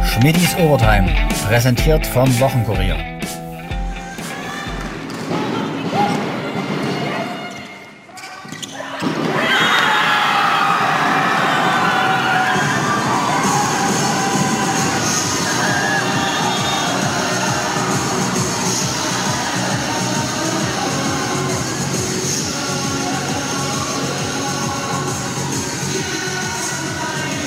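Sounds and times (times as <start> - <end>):
speech: 0.2 - 3.4
arena crowd cheering and shouting: 3.9 - 27.4
whistles: 15.6 - 17.3.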